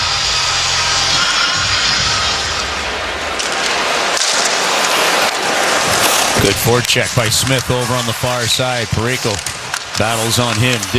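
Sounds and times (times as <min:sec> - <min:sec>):
low droning hum: 0:00.0 - 0:03.4
hockey arena crowd cheering: 0:00.0 - 0:10.9
speech: 0:06.5 - 0:10.9.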